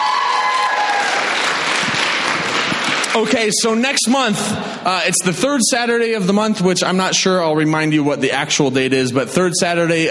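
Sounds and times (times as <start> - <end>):
audience applause: 0.0 - 3.6
speech: 3.2 - 10.0.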